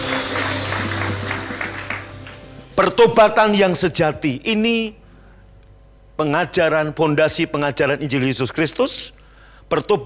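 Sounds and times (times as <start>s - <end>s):
audience applause: 0.0s - 2.8s
speech: 2.8s - 5.0s, 6.2s - 10.0s.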